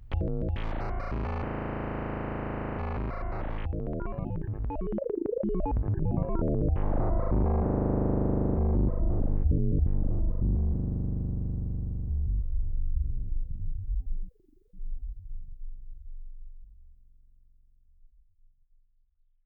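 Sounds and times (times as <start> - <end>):
microtonal synthesizer: 0.0 - 14.3.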